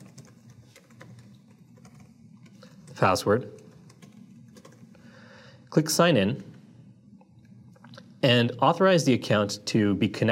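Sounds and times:
typing a Twitter account name on a computer keyboard: 0:00.0 - 0:05.0
speech: 0:03.0 - 0:03.6, 0:05.8 - 0:06.5, 0:08.2 - 0:10.3.

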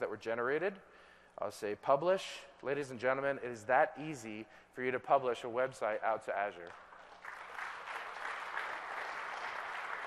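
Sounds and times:
speech: 0:00.0 - 0:06.8
audience applause: 0:06.9 - 0:10.0.

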